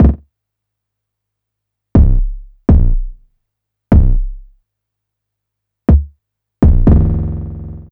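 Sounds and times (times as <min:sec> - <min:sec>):
EAST bass drum: 0:00.0 - 0:00.2, 0:02.0 - 0:03.3, 0:03.9 - 0:04.6, 0:05.9 - 0:07.9
drum loop: 0:00.0 - 0:00.2, 0:02.0 - 0:03.2, 0:03.9 - 0:04.5, 0:05.9 - 0:07.4.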